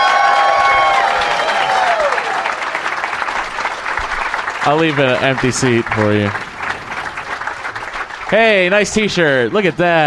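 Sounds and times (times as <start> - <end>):
high whoop: 0.0 - 2.7
audience applause at a live show taping: 0.0 - 10.0
speech: 4.7 - 6.5, 8.3 - 10.0.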